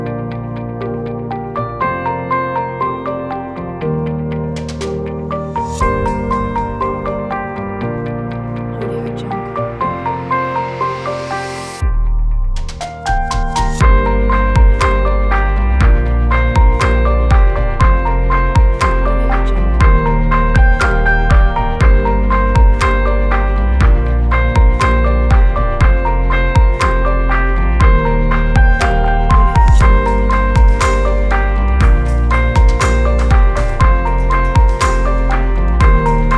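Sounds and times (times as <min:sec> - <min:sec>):
emotional cinematic corporate motivational music: 0:00.0 - 0:36.3.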